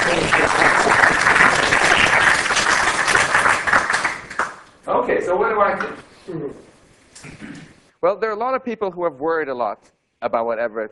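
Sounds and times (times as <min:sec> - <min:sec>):
audience applause: 0:00.0 - 0:04.7
speech: 0:05.5 - 0:10.8.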